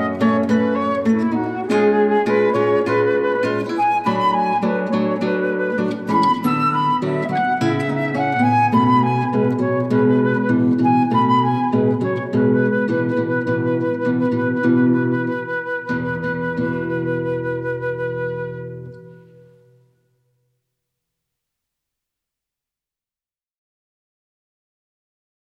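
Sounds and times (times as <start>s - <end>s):
flute playing moderato: 0.0s - 19.8s
guitar playing moderato: 0.0s - 20.5s.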